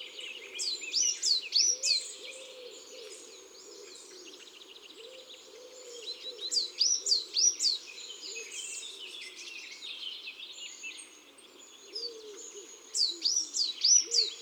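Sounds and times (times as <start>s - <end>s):
coal tit song: 0.0s - 14.4s.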